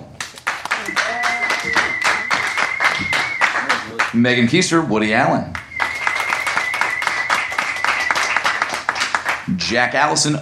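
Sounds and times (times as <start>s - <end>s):
audience applause: 0.2s - 4.2s, 5.6s - 9.5s
people cheering: 0.3s - 4.3s, 5.6s - 9.4s
high whistle: 0.8s - 4.0s, 5.5s - 8.9s
speech: 4.2s - 5.6s, 9.7s - 10.4s.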